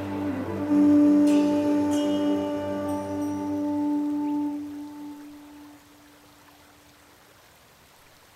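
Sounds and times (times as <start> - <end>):
background music ambience: 0.0 - 5.8.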